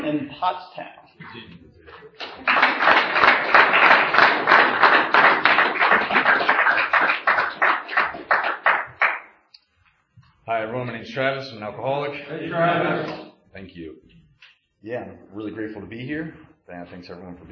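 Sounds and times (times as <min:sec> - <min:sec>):
speech: 0:00.1 - 0:01.6, 0:10.5 - 0:14.2, 0:14.8 - 0:17.5
audience applause welcoming a speaker at a recovery group meeting: 0:01.9 - 0:09.2.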